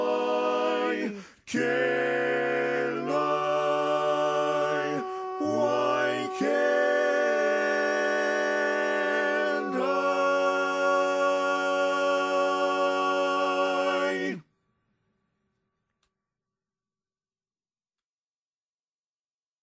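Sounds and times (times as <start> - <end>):
baritone voice: 0.0 - 14.4.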